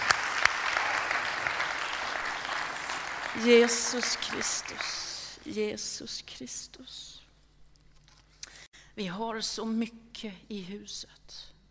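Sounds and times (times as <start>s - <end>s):
audience applauding: 0.0s - 5.4s
speech: 3.4s - 7.2s, 9.0s - 11.5s.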